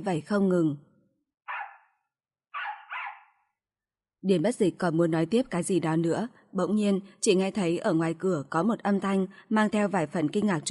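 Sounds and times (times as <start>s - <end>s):
speech: 0.0s - 0.9s, 4.2s - 10.6s
dog barking: 1.5s - 3.5s.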